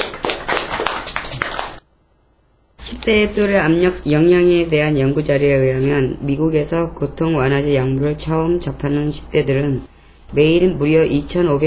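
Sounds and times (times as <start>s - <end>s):
applause: 0.0s - 1.8s
speech: 3.0s - 11.6s.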